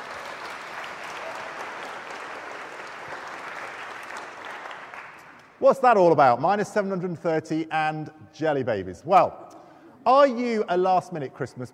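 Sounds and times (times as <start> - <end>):
audience applause: 0.0 - 5.4
speech: 5.6 - 11.7.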